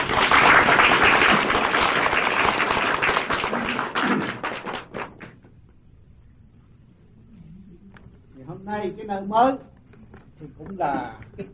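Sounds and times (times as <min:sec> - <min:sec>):
gathering applauding to welcome people to a new place: 0:00.0 - 0:05.5
speech: 0:08.8 - 0:09.7, 0:10.4 - 0:11.5.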